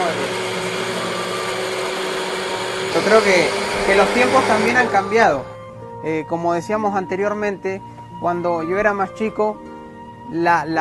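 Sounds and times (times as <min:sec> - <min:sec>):
blender running at high speed mixing ingredients with sweetener: 0:00.0 - 0:05.4
speech: 0:03.0 - 0:09.7, 0:10.3 - 0:10.7.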